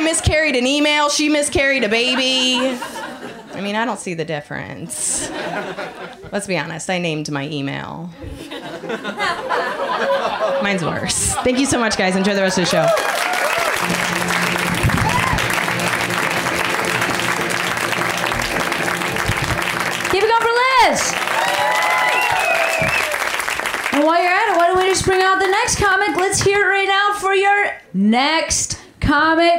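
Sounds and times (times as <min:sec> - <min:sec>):
audience clapping: 0:00.0 - 0:02.5, 0:11.8 - 0:26.6
speech: 0:00.2 - 0:13.4, 0:24.9 - 0:29.5
laughter: 0:01.6 - 0:03.7, 0:05.0 - 0:06.4, 0:08.2 - 0:19.8.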